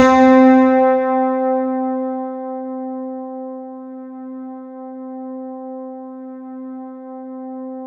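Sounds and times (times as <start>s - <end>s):
synth note C3: 0.0s - 3.2s.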